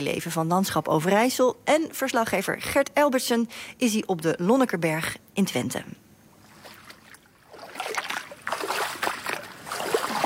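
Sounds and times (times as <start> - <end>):
speech: 0.0 - 6.0
footsteps splashing through ankle-deep water on the Lonnekerberg in Twente, Netherlands: 6.5 - 10.2.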